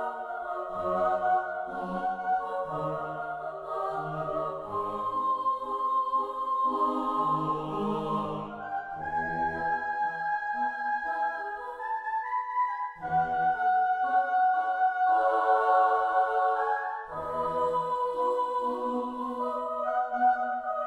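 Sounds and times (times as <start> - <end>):
choir singing: 0.0 - 20.8.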